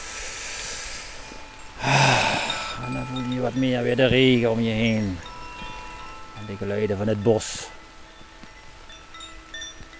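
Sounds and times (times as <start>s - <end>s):
deep breathing in and out: 0.0s - 2.9s
speech: 3.0s - 5.3s, 6.4s - 7.8s.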